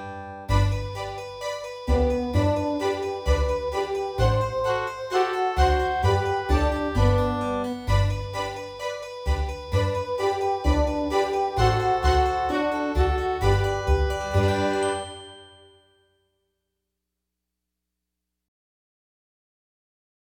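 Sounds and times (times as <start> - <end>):
ascending scale: 0.5 - 15.5.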